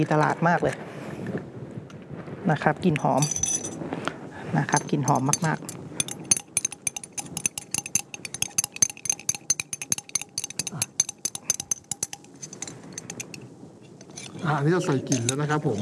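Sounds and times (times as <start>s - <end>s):
speech: 0.0s - 1.4s, 2.5s - 3.5s, 4.5s - 5.7s, 14.5s - 15.8s
utensil clinking on a container stirring liquid into thick shower gel: 3.2s - 3.8s, 4.7s - 15.8s.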